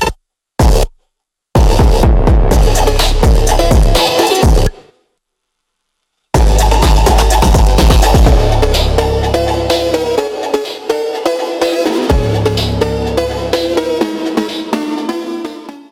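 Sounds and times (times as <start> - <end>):
bass-boosted Brazilian phonk music: 1.6 - 4.8, 6.4 - 15.8.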